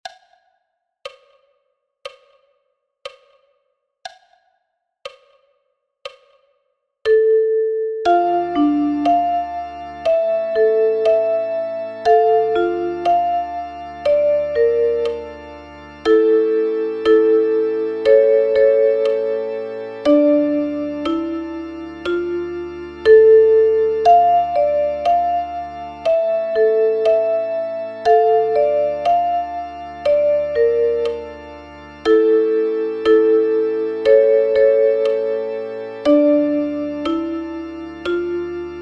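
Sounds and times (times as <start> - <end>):
duet for two chromatic harmonicas: 8.1 - 38.7.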